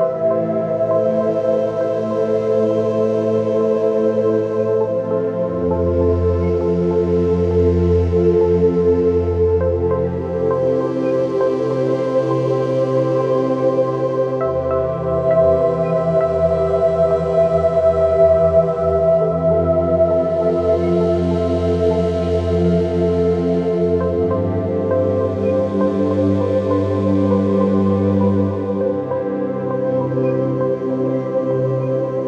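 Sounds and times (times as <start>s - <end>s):
forest melody background music for meditation and yoga: 0.0s - 32.2s.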